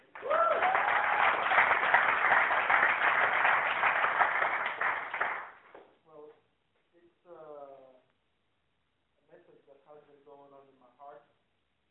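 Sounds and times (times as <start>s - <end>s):
audience applause: 0.0s - 5.6s
person whooping: 0.2s - 1.6s.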